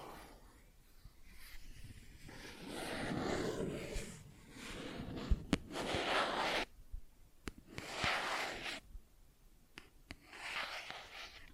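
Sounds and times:
plastic objects being scratched and rubbed: 0:01.5 - 0:06.7, 0:07.7 - 0:08.8, 0:10.2 - 0:11.5.

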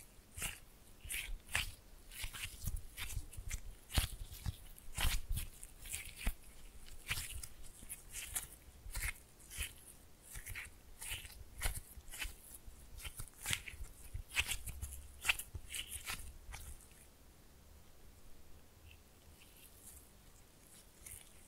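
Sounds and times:
slime being squished and pulled: 0:00.3 - 0:16.9.

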